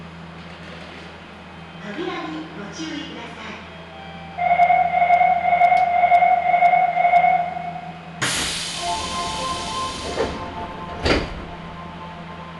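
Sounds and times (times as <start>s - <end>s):
Nagoya Municipal Subway Sakura-dori Line car rumble: 0.0s - 12.5s
loud sustained tone: 4.4s - 12.5s
sudden hiss: 8.2s - 10.5s.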